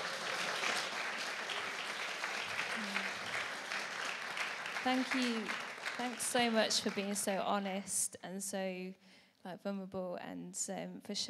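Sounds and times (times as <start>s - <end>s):
audience applause: 0.0s - 7.3s
speech: 4.8s - 11.2s.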